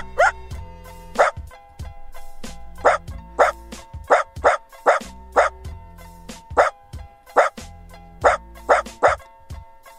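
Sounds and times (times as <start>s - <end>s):
Dachshund barking: 0.0s - 0.4s, 1.2s - 1.4s, 2.8s - 5.6s, 6.5s - 7.6s, 8.2s - 9.3s.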